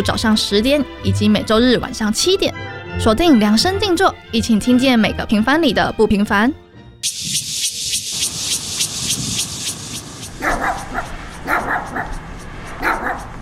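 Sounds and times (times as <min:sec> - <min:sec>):
speech: 0:00.0 - 0:07.5
dog barking in the middle of the night: 0:10.4 - 0:13.4.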